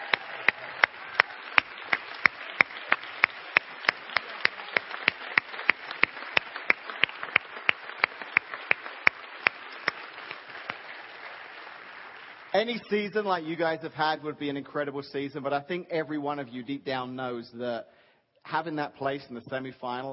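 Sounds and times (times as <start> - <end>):
audience applause: 0.0 - 13.4
speech: 12.6 - 20.1.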